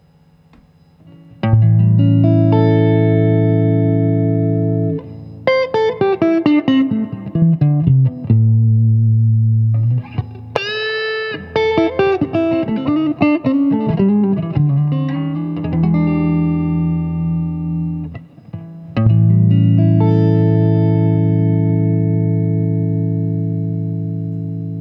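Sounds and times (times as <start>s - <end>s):
clean guitar through 1960s US copper-wire pickups, third position: 0.0s - 24.8s.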